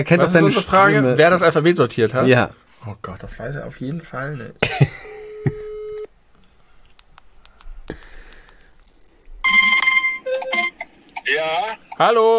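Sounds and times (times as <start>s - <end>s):
speech: 0.0s - 5.6s, 11.5s - 12.3s
telephone ringback tone on an outgoing call: 5.2s - 6.1s, 9.4s - 10.9s.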